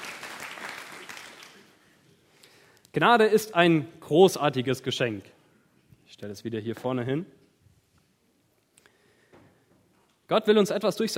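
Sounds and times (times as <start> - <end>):
audience applause: 0.0 - 1.8
speech: 2.9 - 5.4, 6.2 - 7.4, 10.3 - 11.1.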